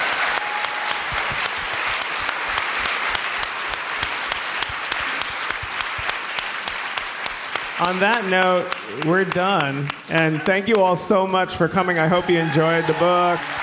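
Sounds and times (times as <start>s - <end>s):
audience applause: 0.0s - 13.6s
speech: 7.8s - 13.6s.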